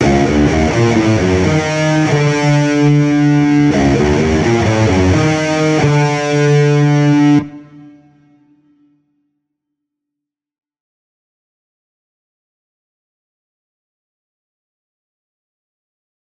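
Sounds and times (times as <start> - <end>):
rock guitar: 0.0 - 8.5.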